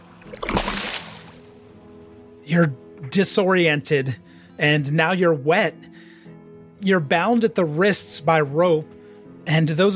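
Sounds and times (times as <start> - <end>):
splash of water: 0.2 - 1.6
speech: 2.5 - 6.1, 6.8 - 9.9.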